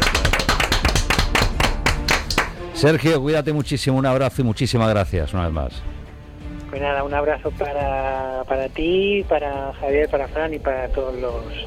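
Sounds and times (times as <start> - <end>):
loud ovation for a guest: 0.0 - 2.6
speech: 2.8 - 6.0, 6.7 - 11.6.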